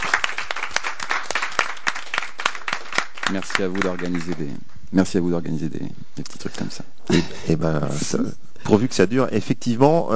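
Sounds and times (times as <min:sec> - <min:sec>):
audience applause: 0:00.0 - 0:04.5
speech: 0:03.3 - 0:10.1.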